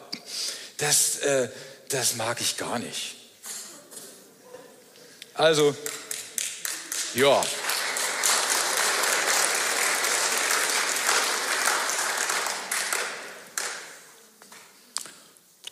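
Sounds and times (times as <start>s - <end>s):
speech: 0.8s - 3.2s, 5.4s - 6.0s, 7.1s - 7.6s
small round of applause: 5.8s - 14.1s.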